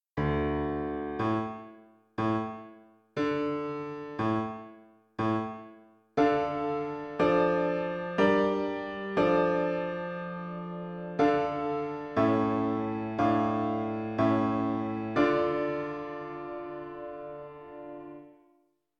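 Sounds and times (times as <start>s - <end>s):
piano: 0.2s - 18.6s.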